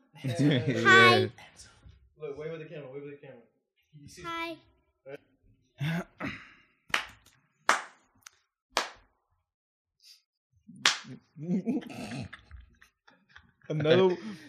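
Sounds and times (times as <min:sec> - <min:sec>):
laughter: 0:00.2 - 0:01.2, 0:11.1 - 0:14.4
speech: 0:00.2 - 0:06.4, 0:11.4 - 0:12.4, 0:13.7 - 0:14.4
hand claps to sync cameras: 0:06.9 - 0:09.1, 0:10.8 - 0:11.2.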